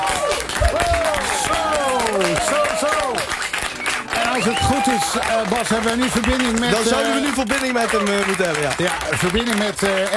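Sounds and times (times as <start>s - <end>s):
whoops and cheers: 0.0s - 5.5s
studio audience applause for a radio presenter's birthday: 0.0s - 10.1s
speech: 4.4s - 10.1s.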